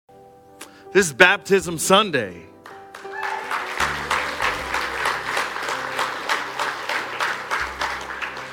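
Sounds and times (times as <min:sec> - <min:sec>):
speech: 0:00.9 - 0:02.5
audience clapping: 0:02.6 - 0:08.5.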